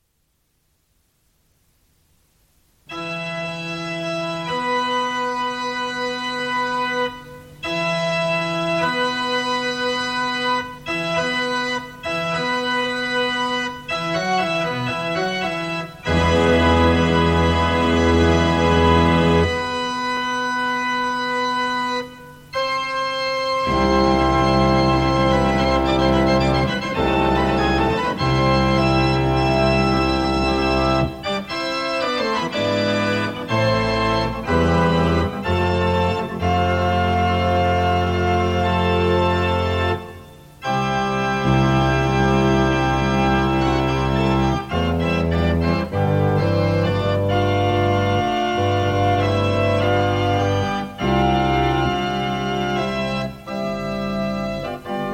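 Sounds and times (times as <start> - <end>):
concert organ: 2.9 - 55.1.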